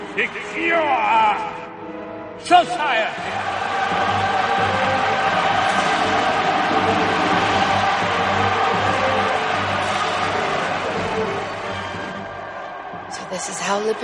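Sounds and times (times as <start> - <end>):
speech: 0.1 - 1.7, 2.4 - 4.3, 13.4 - 14.0
thunderous applause from a large crowd: 3.2 - 14.0.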